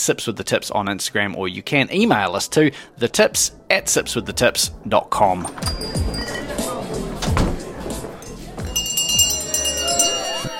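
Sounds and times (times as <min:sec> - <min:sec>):
speech: 0:00.0 - 0:06.2
last call bell ringing: 0:05.5 - 0:07.0, 0:08.2 - 0:10.5.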